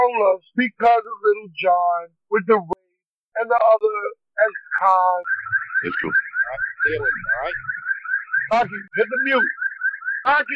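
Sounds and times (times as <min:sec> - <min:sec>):
speech: 0:00.1 - 0:02.8, 0:03.4 - 0:07.8, 0:08.5 - 0:09.6, 0:10.2 - 0:10.5
car alarm: 0:04.4 - 0:10.5
warbling tones: 0:04.6 - 0:09.0.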